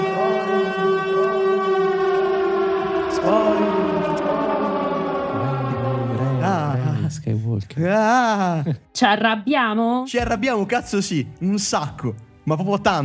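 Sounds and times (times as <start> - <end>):
alarm siren: 0.0 - 7.2
speech: 7.1 - 13.0.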